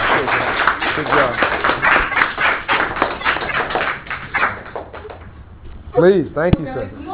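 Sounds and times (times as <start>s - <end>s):
round of applause: 0.0s - 5.2s
speech: 6.0s - 7.0s.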